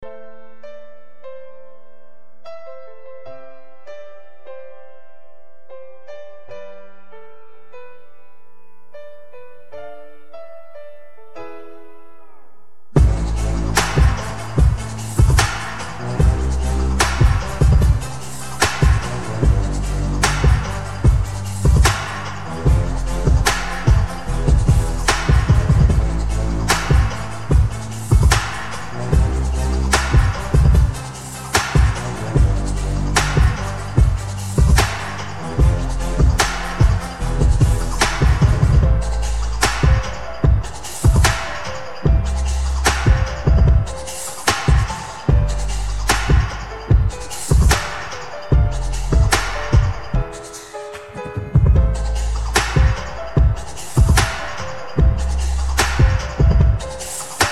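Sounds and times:
hip hop rap instrumental: 13.0 - 57.5.

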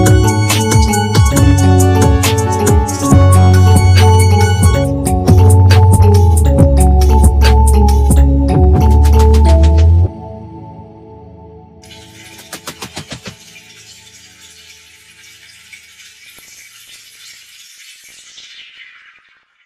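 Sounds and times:
music beat: 0.0 - 10.1, 11.9 - 13.6.

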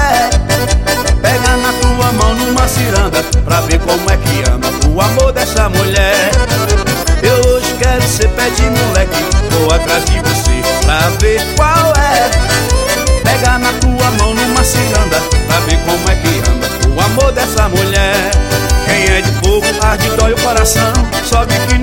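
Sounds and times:
forro music: 0.0 - 21.8.

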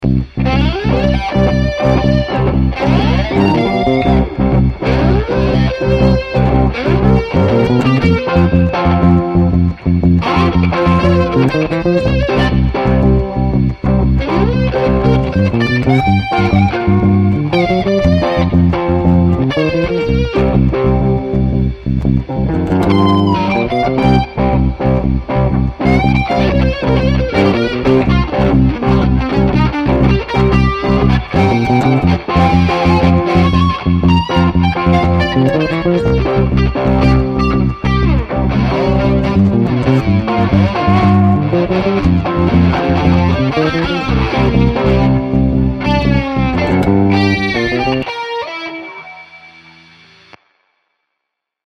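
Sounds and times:
blues music in G: 0.0 - 50.4.

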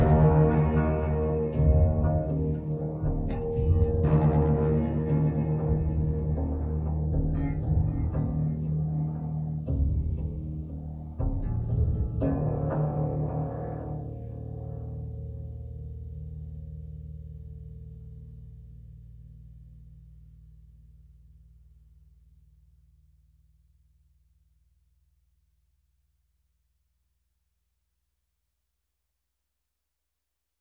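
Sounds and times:
tense combat music: 0.0 - 14.6.

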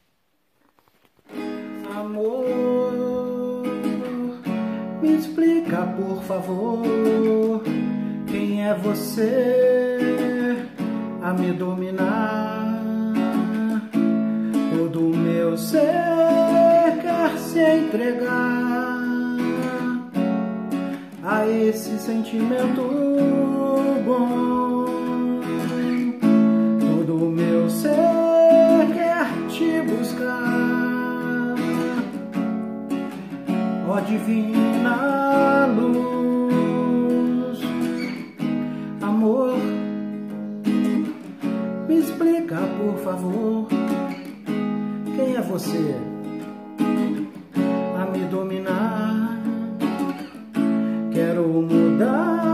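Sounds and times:
simple version for acoustic guitar: 0.0 - 52.5.

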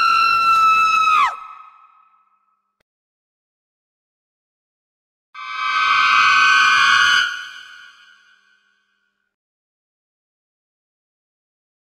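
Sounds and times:
horror screams: 0.0 - 2.4, 5.4 - 8.8
horror suspense sounds: 5.4 - 8.8.

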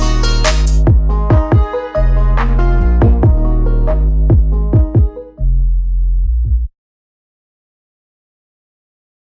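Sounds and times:
music beat: 0.0 - 6.7.

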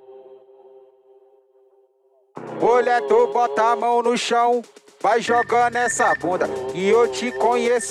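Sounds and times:
mega funk music: 2.5 - 7.8.

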